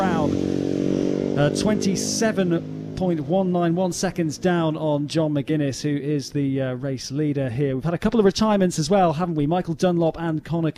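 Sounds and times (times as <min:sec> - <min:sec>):
commentator talking: 0:00.0 - 0:00.3, 0:01.4 - 0:10.7
racing motorcycle engine passing during a road race: 0:00.0 - 0:05.5
speech: 0:01.4 - 0:10.7.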